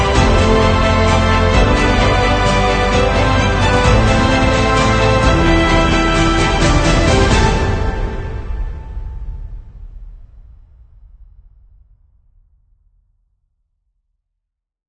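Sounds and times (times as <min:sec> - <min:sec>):
epic choir singing: 0:00.0 - 0:09.0.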